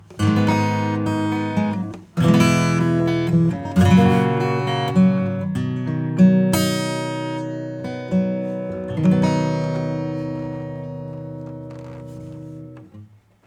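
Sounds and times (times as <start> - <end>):
acoustic music: 0.0 - 13.2.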